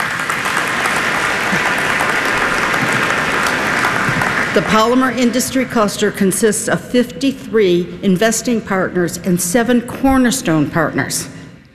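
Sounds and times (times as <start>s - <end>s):
audience clapping: 0.0s - 5.4s
speech: 4.6s - 11.4s.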